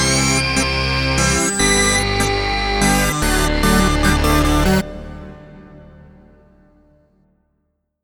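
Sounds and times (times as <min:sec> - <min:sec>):
MemoryMoog synthesizer electro dance music: 0:00.0 - 0:06.3.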